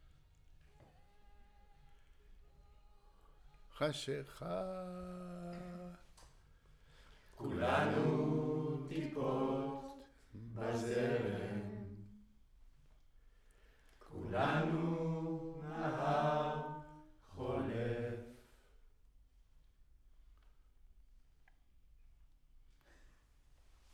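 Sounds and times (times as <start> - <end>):
choir singing: 7.4 - 12.3, 14.1 - 18.6.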